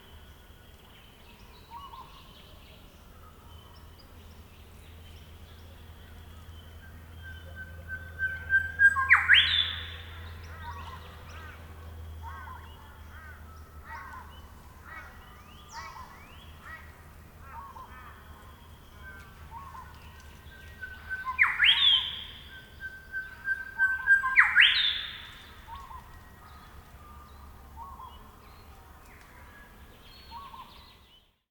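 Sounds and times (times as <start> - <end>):
Grey Shrikethrush Colluricincla Harmonica calling: 7.6 - 28.3.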